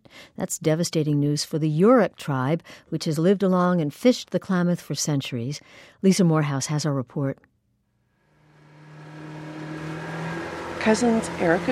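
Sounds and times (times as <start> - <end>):
speech: 0.3 - 7.5, 10.8 - 11.6
motorboat patrolling the Klamath River: 8.3 - 11.6.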